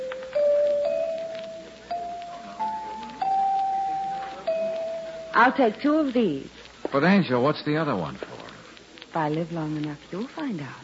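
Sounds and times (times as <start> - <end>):
chimes ringing: 0.0 - 5.6
speech: 5.4 - 8.3, 9.2 - 10.8.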